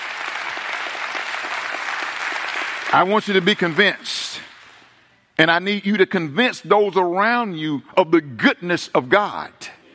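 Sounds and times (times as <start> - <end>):
audience hand clapping: 0.0 - 5.0
speech: 2.9 - 4.5, 5.4 - 9.7.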